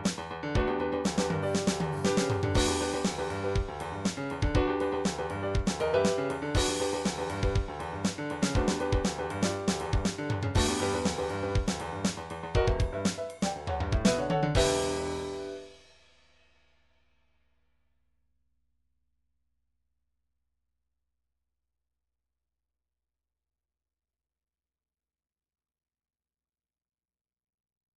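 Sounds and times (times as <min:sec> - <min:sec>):
funk drum grooves from MIDI loops: 0:00.0 - 0:15.7.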